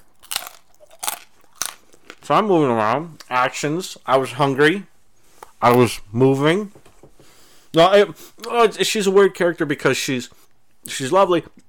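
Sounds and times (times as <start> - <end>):
biting and chewing a crunchy snack: 0.0 - 2.3
speech: 2.3 - 4.9, 5.6 - 6.8, 7.7 - 11.6.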